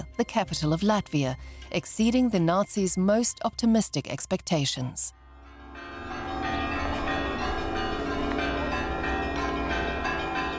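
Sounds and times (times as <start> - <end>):
speech: 0.2 - 5.2
church bells ringing: 5.2 - 10.5.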